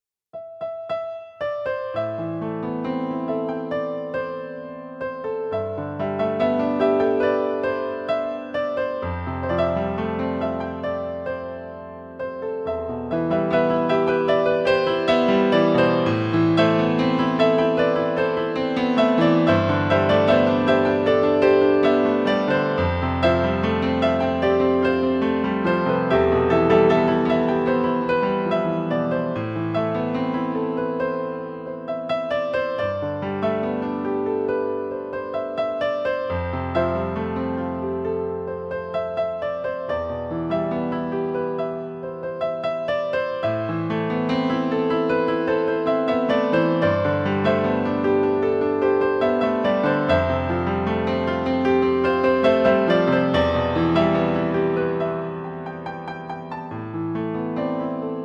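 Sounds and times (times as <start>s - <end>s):
piano: 0.0s - 58.2s.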